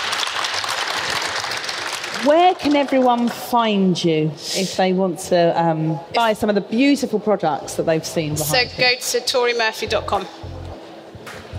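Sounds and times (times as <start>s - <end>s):
round of applause: 0.0s - 3.4s
speech: 2.2s - 10.4s.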